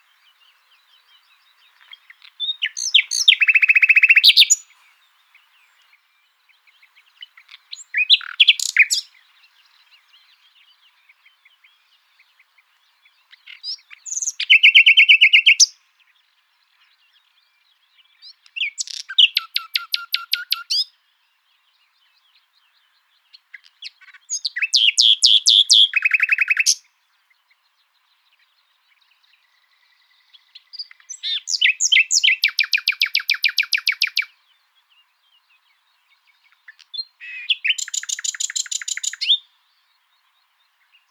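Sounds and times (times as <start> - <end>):
common nightingale song: 0.0 - 41.0.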